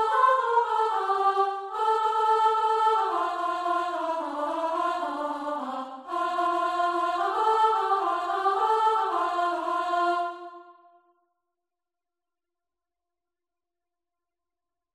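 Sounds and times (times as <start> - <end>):
soprano singing from a chorus: 0.0 - 10.7.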